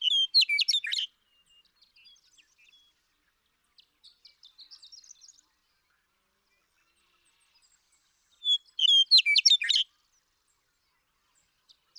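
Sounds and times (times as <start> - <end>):
Western meadowlark song: 0.0 - 3.0, 8.4 - 9.9.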